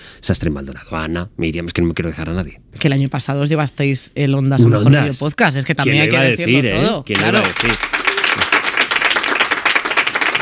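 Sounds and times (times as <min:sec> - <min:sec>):
speech: 0:00.2 - 0:07.9
applause sound effect from a studio applause button: 0:07.1 - 0:10.4.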